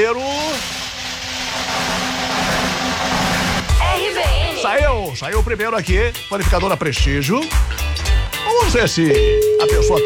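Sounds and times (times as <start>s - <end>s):
drumroll for a radio prize draw: 0.0s - 5.5s
speech: 5.1s - 10.0s.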